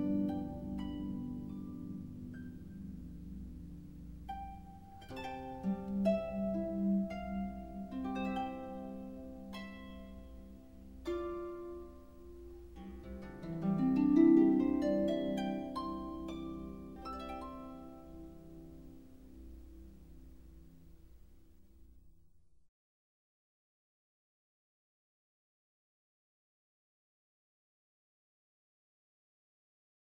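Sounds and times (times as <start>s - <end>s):
instrumental harp praise music: 0.0s - 21.5s.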